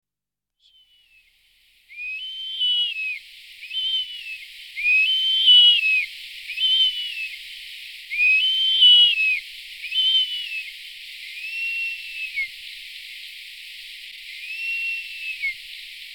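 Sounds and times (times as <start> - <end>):
bearded vulture squealing whistles: 2.0 - 7.3, 8.2 - 10.7, 11.4 - 12.5, 14.4 - 15.6.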